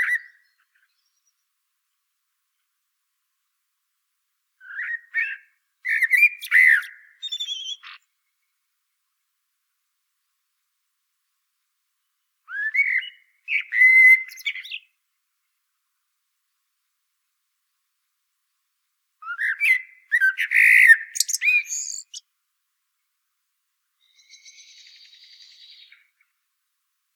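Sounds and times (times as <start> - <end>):
Common blackbird song: 4.6 - 8.0, 12.5 - 14.9, 19.2 - 22.2, 24.0 - 26.1.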